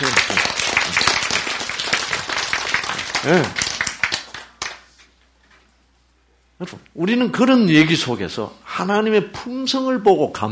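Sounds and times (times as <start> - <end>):
applause: 0.0 - 5.0
speech: 3.2 - 3.6, 6.6 - 10.5.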